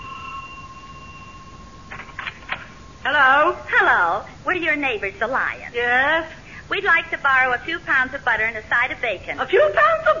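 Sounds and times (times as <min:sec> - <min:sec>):
electronic doorbell ringing: 0:00.0 - 0:03.5
speech: 0:03.0 - 0:10.1.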